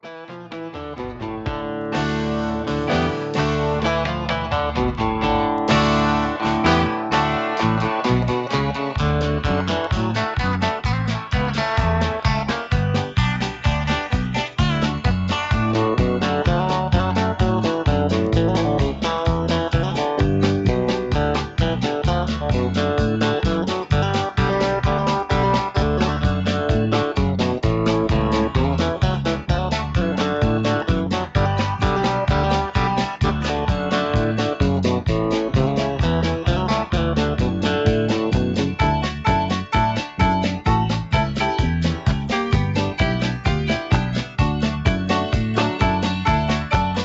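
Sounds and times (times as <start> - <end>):
instrumental music: 0.0 - 47.0.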